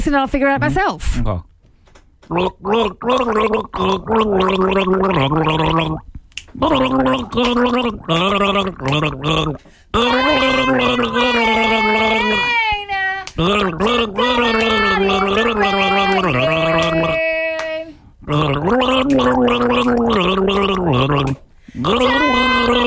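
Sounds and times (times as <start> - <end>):
speech: 0.1 - 1.5, 2.3 - 12.6, 13.4 - 17.2, 18.3 - 22.8
person gargling water to mimic a song: 2.3 - 12.5, 13.4 - 17.4, 18.2 - 22.8.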